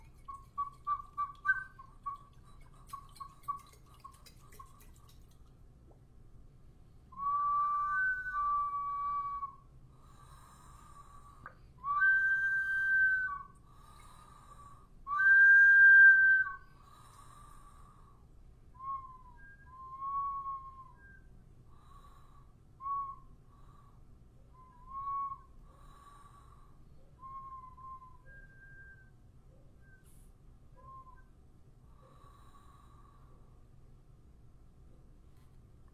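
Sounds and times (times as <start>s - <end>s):
Chorrera culture water whistle bottle from Ecuador: 0.0s - 5.0s, 7.2s - 9.6s, 11.8s - 13.6s, 15.1s - 16.6s, 18.8s - 21.4s, 27.2s - 29.2s.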